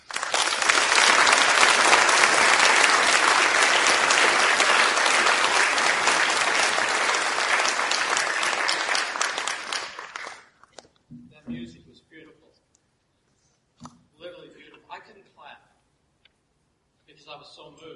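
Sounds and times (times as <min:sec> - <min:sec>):
crowd applause: 0:00.0 - 0:10.6.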